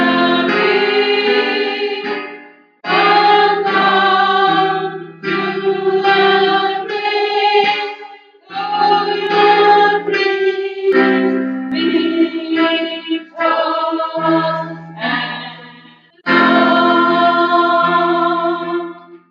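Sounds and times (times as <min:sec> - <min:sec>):
alto voice part singing: 0:00.0 - 0:19.2.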